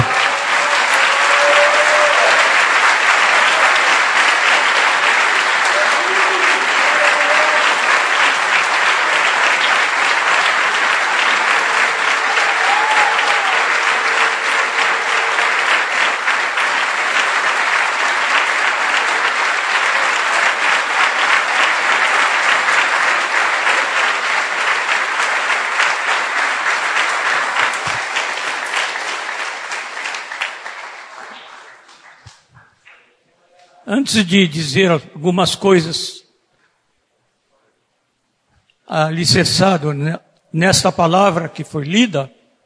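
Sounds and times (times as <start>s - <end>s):
audience applauding: 0.0s - 33.2s
speech: 34.0s - 36.2s, 38.9s - 42.4s.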